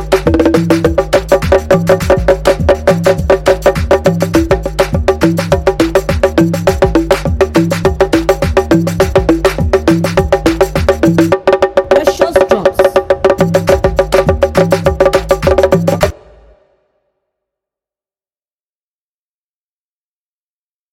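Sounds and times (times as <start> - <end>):
conga instrumental: 0.0 - 16.6.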